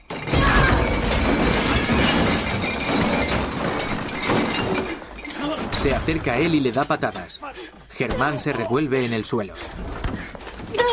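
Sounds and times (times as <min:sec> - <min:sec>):
pile of boxes thrown down crashing: 0:00.0 - 0:06.3
speech: 0:05.8 - 0:10.9.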